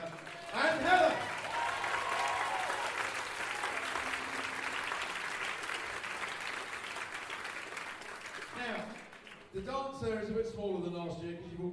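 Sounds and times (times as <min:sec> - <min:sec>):
sustained applause from a large audience: 0:00.0 - 0:09.5
scattered cheers and whoops: 0:00.3 - 0:05.2
speech: 0:09.6 - 0:11.7.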